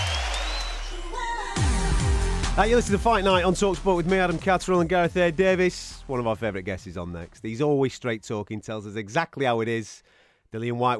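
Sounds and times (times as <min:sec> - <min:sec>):
thin whistle: 0:00.0 - 0:01.0
boxing arena crowd cheering: 0:00.0 - 0:01.6
speech: 0:02.6 - 0:10.9.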